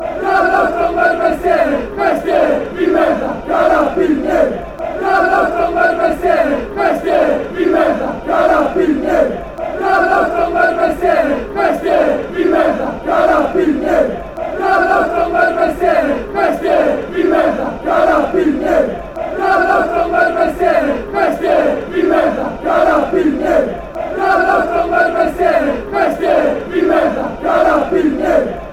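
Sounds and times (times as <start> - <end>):
police chanting: 0.0 - 28.7.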